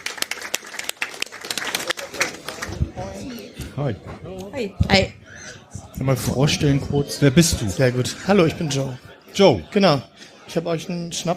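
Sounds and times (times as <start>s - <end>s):
audience applause: 0.0s - 3.2s
speech: 3.8s - 11.3s.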